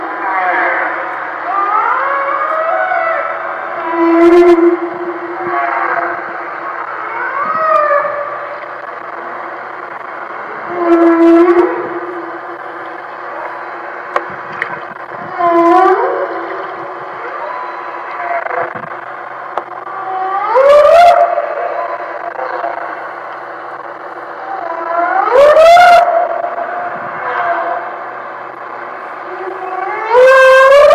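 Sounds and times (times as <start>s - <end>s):
whales singing: 0.0s - 30.9s.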